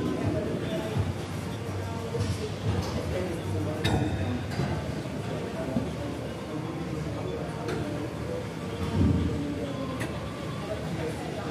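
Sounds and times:
murmur of voices in a gym: 0.0s - 11.5s.

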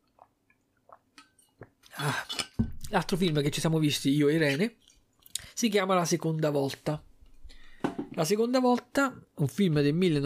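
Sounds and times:
person drinking water: 0.0s - 3.2s
speech: 2.0s - 4.8s, 5.6s - 7.1s, 8.2s - 10.2s.

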